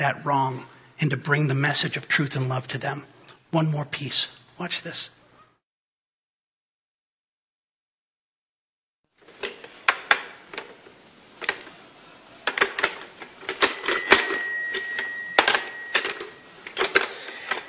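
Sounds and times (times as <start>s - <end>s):
speech: 0.0s - 5.2s
toy rotary phone ringing: 12.5s - 17.6s.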